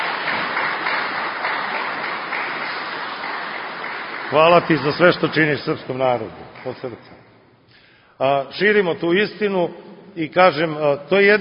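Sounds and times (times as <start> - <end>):
audience applause welcoming a female guest at a gathering: 0.0 - 7.2
speech: 4.3 - 7.2, 8.2 - 11.3.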